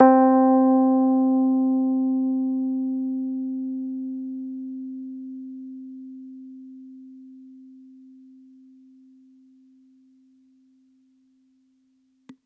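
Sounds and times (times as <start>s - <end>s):
Rhodes electric piano: 0.0s - 7.9s.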